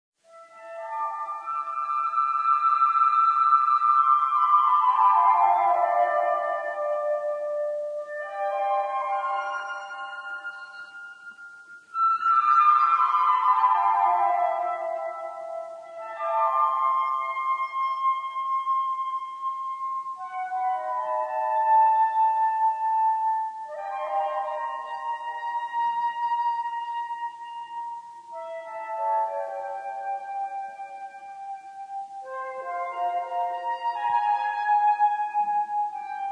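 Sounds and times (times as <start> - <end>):
flute: 0.2 - 36.2.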